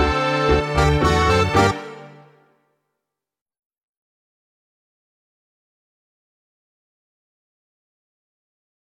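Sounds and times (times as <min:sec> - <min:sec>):
tango on guitar: 0:00.0 - 0:02.1.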